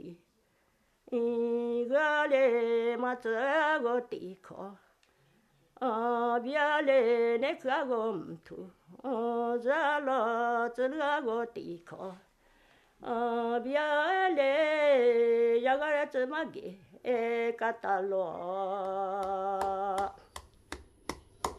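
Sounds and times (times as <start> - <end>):
woman singing an unaccompanied Black Lahu song: 0.0 - 0.3, 1.0 - 4.9, 5.8 - 12.3, 13.0 - 20.3.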